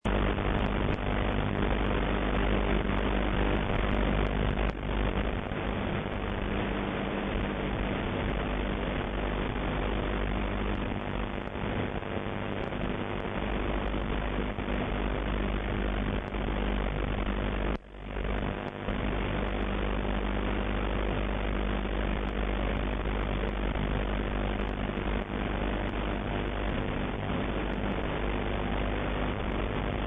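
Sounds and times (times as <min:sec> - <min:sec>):
noise: 0:00.0 - 0:30.0.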